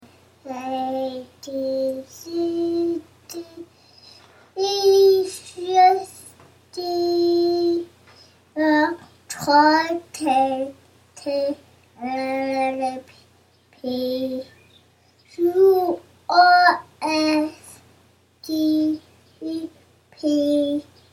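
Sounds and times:
baby singing a nursery song: 0:00.4 - 0:03.7, 0:04.6 - 0:07.9, 0:08.6 - 0:13.2, 0:13.8 - 0:14.6, 0:15.3 - 0:17.8, 0:18.4 - 0:20.9.

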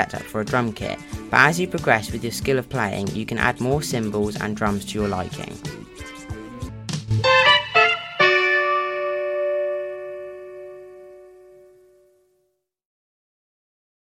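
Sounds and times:
drum kit: 0:00.0 - 0:09.7.

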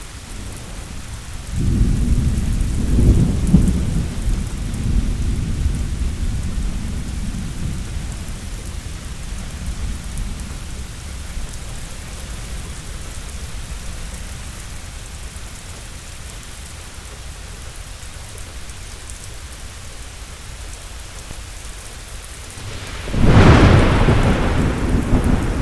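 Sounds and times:
thunderstorm: 0:00.3 - 0:11.6, 0:22.6 - 0:25.5.

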